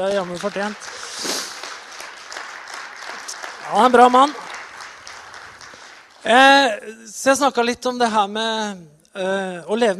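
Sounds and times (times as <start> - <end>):
speech: 0.0 - 1.3, 3.7 - 4.4, 6.2 - 9.9
audience applause: 0.0 - 6.4.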